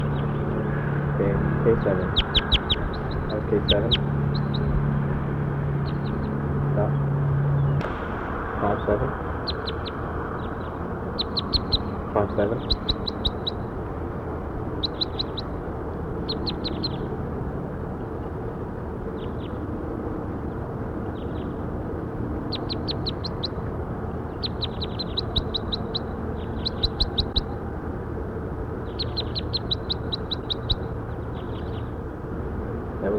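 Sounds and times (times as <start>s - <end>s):
steady low rumble of noise: 0.0s - 33.1s
speech: 1.2s - 2.6s, 3.3s - 4.2s, 8.6s - 9.3s, 12.2s - 13.0s
high rapid bird chirps: 2.0s - 4.8s, 5.8s - 7.0s, 9.4s - 13.7s, 14.7s - 15.6s, 16.2s - 17.1s, 22.4s - 27.6s, 28.8s - 32.0s.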